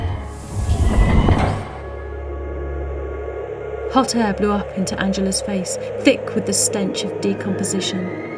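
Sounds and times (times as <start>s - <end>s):
hissing separation door sliding open: 0.2s - 2.0s
speech: 3.9s - 8.3s.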